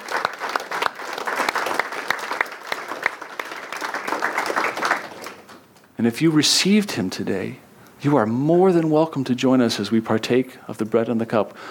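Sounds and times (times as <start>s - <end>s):
audience applauding: 0.0s - 5.8s
speech: 6.0s - 11.7s.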